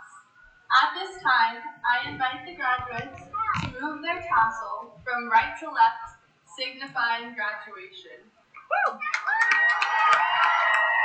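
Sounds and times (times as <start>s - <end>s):
speech: 1.0s - 9.2s
crowd cheering at a high school graduation ceremony: 8.8s - 11.0s
hand clapping at a high school graduation ceremony: 8.9s - 11.0s.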